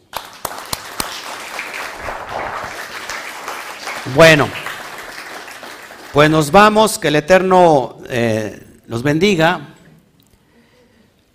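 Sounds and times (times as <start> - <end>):
crowd applauding: 0.0 - 6.7
speech: 4.1 - 4.6, 6.1 - 9.7.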